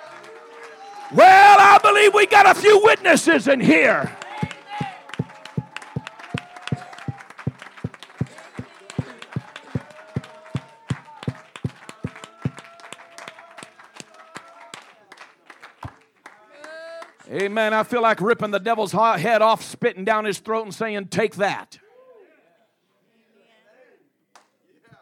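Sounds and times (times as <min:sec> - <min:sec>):
audience clapping: 0:00.0 - 0:17.6
speech: 0:01.1 - 0:04.2, 0:17.5 - 0:21.8.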